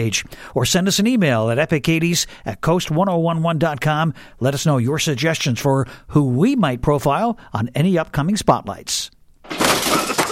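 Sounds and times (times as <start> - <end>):
speech: 0.0 - 10.1
cracking debris from bathroom demolition: 9.4 - 10.3
bathroom renovation demolition smashing and crunching: 9.5 - 10.3
sharp crash: 9.5 - 10.3.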